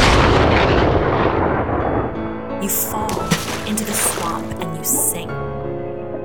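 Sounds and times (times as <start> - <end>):
lightning strike crack: 0.0 - 2.4
thunder rumbling: 0.0 - 5.2
speech: 2.7 - 3.1, 3.7 - 5.6.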